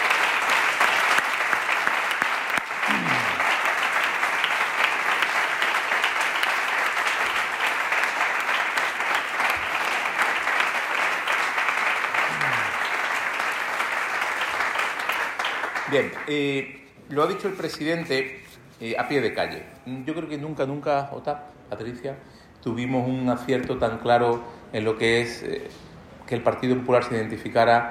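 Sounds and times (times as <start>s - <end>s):
audience applause: 0.0s - 16.3s
speech: 15.9s - 27.8s.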